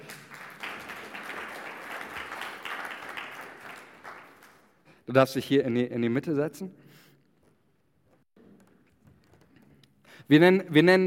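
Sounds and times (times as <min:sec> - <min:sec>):
audience applauding: 0:00.0 - 0:04.8
speech: 0:05.1 - 0:06.8, 0:10.3 - 0:11.0.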